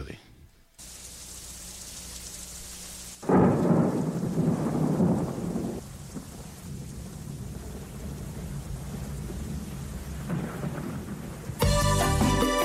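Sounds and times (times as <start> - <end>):
steady soft patter of rain: 0.0 - 12.5
heavy roll of thunder rumbling: 3.2 - 11.8.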